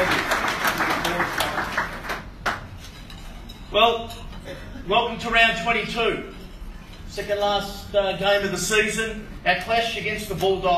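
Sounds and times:
crowd applause at a football club gathering at Etihad Stadium: 0.0s - 2.6s
speech: 3.8s - 4.2s, 4.9s - 6.4s, 7.2s - 10.7s.

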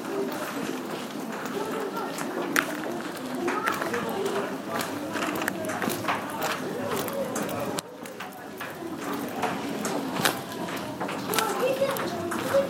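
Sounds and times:
London Underground station ambience: 0.0s - 12.6s.

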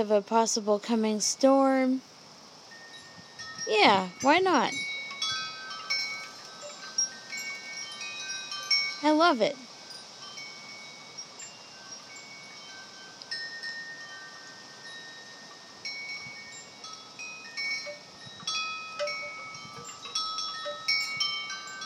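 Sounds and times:
speech: 0.0s - 2.1s, 3.7s - 4.9s, 9.0s - 9.7s
large wooden wind chime: 1.2s - 21.8s.

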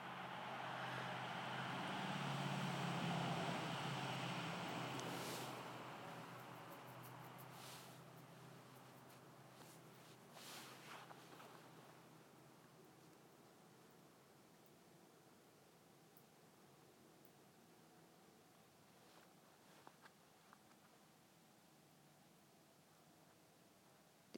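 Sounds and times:
noisy truck coming up the road: 0.0s - 9.1s.

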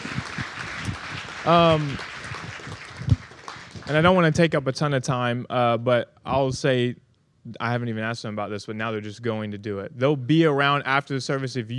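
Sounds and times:
audience clapping: 0.0s - 4.3s
speech: 1.4s - 2.1s, 3.9s - 11.7s.

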